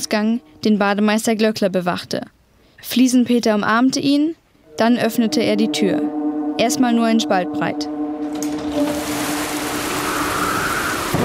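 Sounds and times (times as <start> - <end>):
speech: 0.0 - 8.0
low rumble possibly thunder: 4.6 - 10.5
heavy rain: 8.3 - 11.2.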